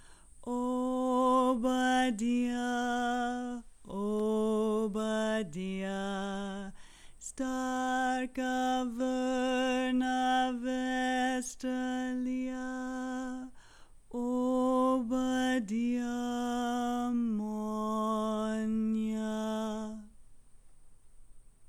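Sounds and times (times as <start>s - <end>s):
folk choir singing a boat song low harmony on doh: 0.0s - 20.1s.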